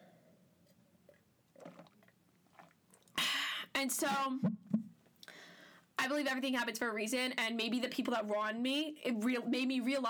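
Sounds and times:
person drinking water: 1.5s - 3.2s
speech: 3.8s - 4.6s, 6.0s - 10.0s.

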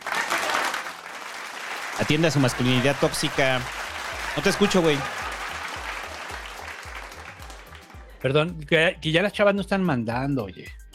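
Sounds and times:
applause: 0.0s - 8.2s
speech: 2.0s - 3.8s, 4.4s - 5.2s, 8.2s - 10.8s.

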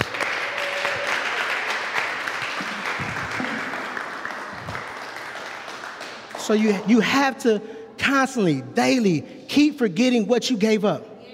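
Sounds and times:
audience applause: 0.0s - 6.9s
speech: 6.5s - 11.1s.

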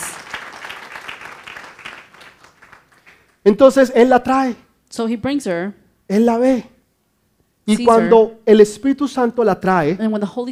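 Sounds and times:
audience applause: 0.0s - 3.4s
speech: 3.4s - 6.7s, 7.7s - 10.4s.

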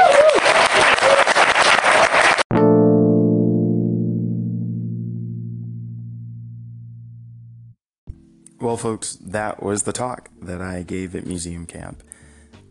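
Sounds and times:
crowd clapping: 0.0s - 2.5s
low sustained humming chord: 2.6s - 8.4s
speech: 8.7s - 12.2s.

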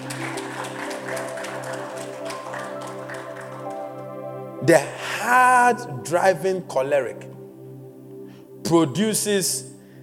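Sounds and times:
audience applause: 0.0s - 4.1s
speech: 4.6s - 7.3s, 8.7s - 9.7s.

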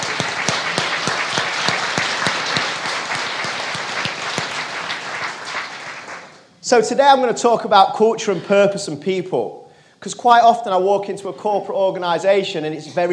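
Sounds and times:
audience applause: 0.0s - 6.4s
speech: 6.7s - 13.1s.

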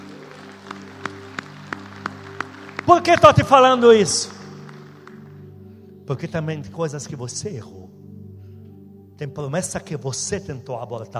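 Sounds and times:
audience clapping in unison: 0.0s - 5.7s
speech: 2.9s - 4.4s, 6.1s - 8.0s, 9.2s - 11.1s.

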